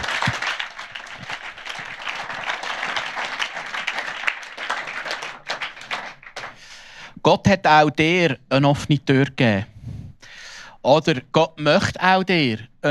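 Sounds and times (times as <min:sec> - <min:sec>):
room full of people applauding: 0:00.0 - 0:06.8
speech: 0:07.3 - 0:09.7, 0:10.8 - 0:12.9.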